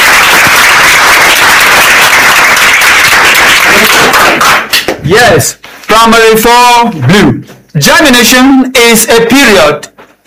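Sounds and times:
classroom applause: 0.0s - 5.0s
speech: 5.1s - 10.2s.

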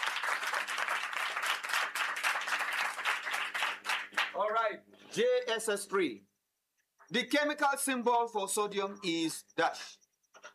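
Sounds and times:
crowd round of applause: 0.0s - 4.4s
speech: 4.4s - 6.3s, 7.1s - 10.0s.

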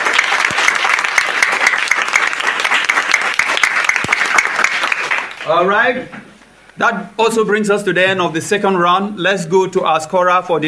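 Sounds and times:
round of applause: 0.0s - 5.5s
speech: 5.5s - 10.6s.

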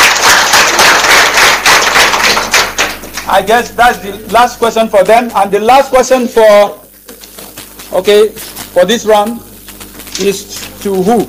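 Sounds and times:
group applause for a correct answer in a school quiz round: 0.0s - 3.7s
speech: 3.4s - 6.8s, 7.9s - 9.5s, 10.2s - 11.2s.

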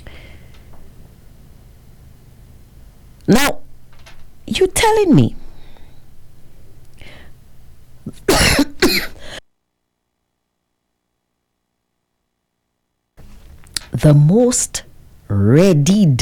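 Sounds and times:
speech: 4.5s - 5.4s, 14.0s - 16.2s
person coughing: 8.1s - 9.4s.

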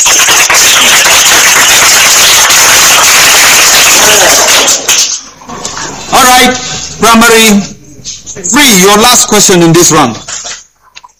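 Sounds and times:
crowd applause: 0.0s - 5.2s
speech: 6.4s - 7.7s, 8.5s - 10.4s.

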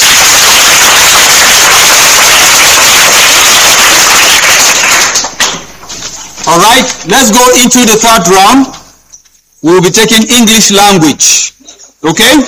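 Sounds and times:
pupils clapping: 0.0s - 6.2s
speech: 6.6s - 8.8s, 9.6s - 11.4s, 12.0s - 12.4s.

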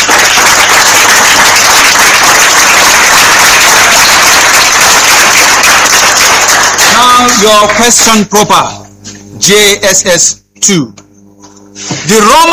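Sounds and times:
round of applause: 0.0s - 8.0s
speech: 7.2s - 8.8s, 9.4s - 11.0s, 12.0s - 12.5s.

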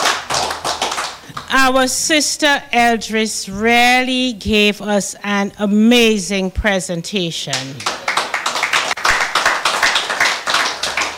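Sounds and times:
audience clapping: 0.0s - 1.5s, 7.5s - 11.1s
speech: 1.5s - 8.0s.

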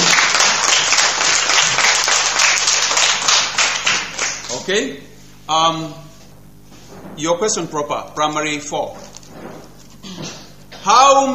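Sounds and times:
audience applause: 0.0s - 4.6s
speech: 4.7s - 6.1s, 7.2s - 9.0s, 10.8s - 11.3s.

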